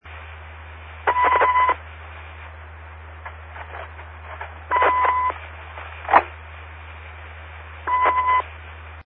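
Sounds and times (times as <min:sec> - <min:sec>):
signal sound: 0:01.0 - 0:01.8, 0:04.7 - 0:05.4, 0:07.8 - 0:08.5.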